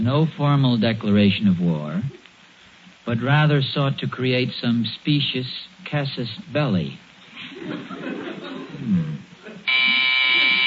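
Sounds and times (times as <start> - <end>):
speech: 0.0 - 2.2, 3.0 - 8.2
person chuckling: 7.3 - 10.6
low murmuring voices: 8.2 - 9.6
electric doorbell buzzer ringing: 9.7 - 10.6.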